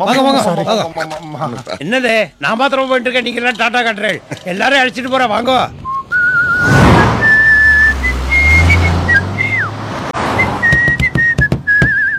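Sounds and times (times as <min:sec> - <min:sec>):
speech: 0:00.0 - 0:05.8
person whistling a tune: 0:05.8 - 0:09.7, 0:10.4 - 0:12.1
low rumbling: 0:05.9 - 0:09.9.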